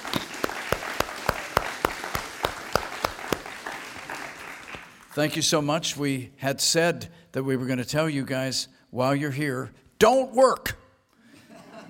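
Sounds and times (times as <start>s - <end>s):
audience round of applause: 0.0s - 5.1s
speech: 5.2s - 10.8s.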